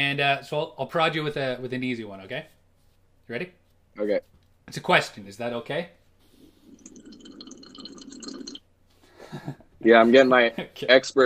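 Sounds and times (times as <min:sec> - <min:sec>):
speech: 0:00.0 - 0:02.6, 0:03.3 - 0:06.0, 0:09.4 - 0:11.2
hearty sip of a drink: 0:06.4 - 0:08.6.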